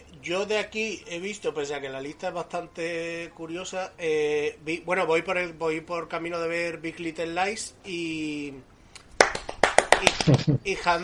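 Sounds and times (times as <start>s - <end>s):
speech: 0.2s - 8.7s, 10.0s - 11.0s
applause: 9.2s - 10.4s.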